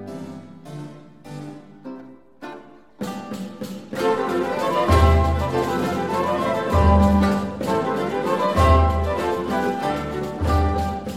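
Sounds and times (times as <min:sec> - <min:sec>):
tordion dance music: 0:04.1 - 0:11.1.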